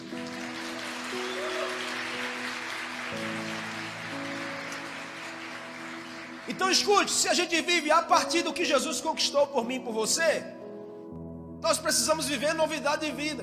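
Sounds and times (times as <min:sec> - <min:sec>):
audience applause: 0:00.0 - 0:07.2
sustained keyboard chords: 0:00.0 - 0:13.4
speech: 0:06.6 - 0:10.6, 0:11.8 - 0:13.4.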